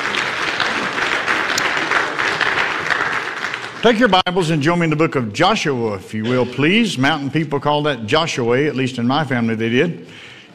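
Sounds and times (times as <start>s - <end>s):
audience clapping: 0.0s - 4.7s
speech: 3.8s - 10.5s.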